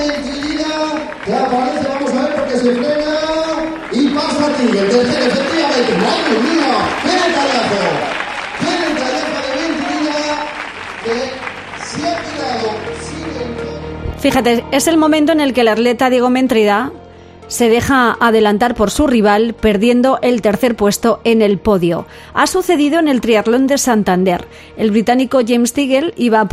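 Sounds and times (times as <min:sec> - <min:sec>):
loud cheering: 0:00.0 - 0:13.6
overlapping voices: 0:00.0 - 0:14.2
crowd applauding: 0:00.0 - 0:14.6
speech: 0:02.6 - 0:03.2, 0:04.2 - 0:08.2, 0:14.2 - 0:26.5.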